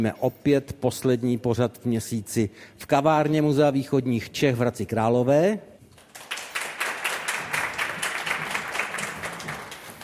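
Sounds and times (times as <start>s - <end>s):
speech: 0.0s - 5.7s
audience applause at a live recording in a museum café in Hradec Králové: 6.0s - 10.0s.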